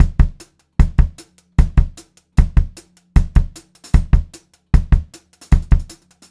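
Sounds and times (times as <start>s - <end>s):
152 BPM pop rock drum loop: 0.0s - 6.2s.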